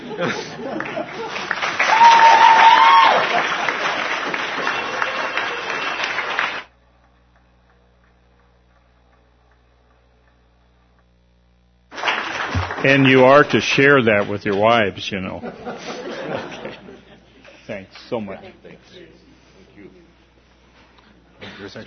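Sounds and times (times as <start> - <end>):
laughter: 0.0 - 1.8, 15.2 - 18.9
audience standing and applauding: 0.0 - 9.6, 11.9 - 16.7
speech: 0.2 - 2.1, 12.8 - 16.6, 18.1 - 19.3, 21.6 - 21.8.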